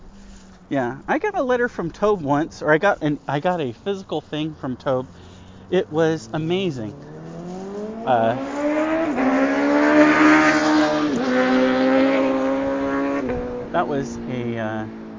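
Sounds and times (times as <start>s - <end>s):
speech: 0.7s - 7.1s, 8.0s - 8.6s, 9.2s - 10.6s, 13.8s - 15.0s
R6 motorcycle speeding past fast and loud: 5.2s - 15.1s.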